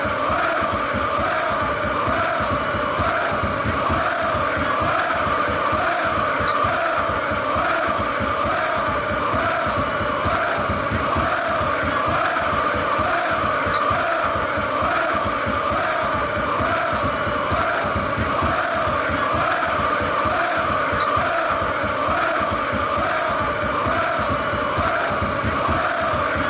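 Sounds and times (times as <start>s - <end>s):
fan chants: 0.0s - 26.4s.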